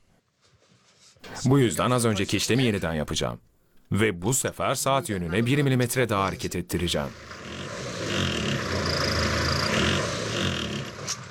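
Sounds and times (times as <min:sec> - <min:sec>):
speech: 0:01.4 - 0:07.5
small engine revving: 0:07.1 - 0:11.2.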